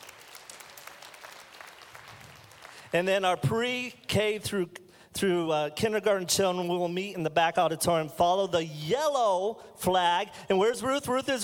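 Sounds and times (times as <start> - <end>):
audience applause for children at an auditorium event: 0.0 - 2.9
speech: 2.9 - 11.4.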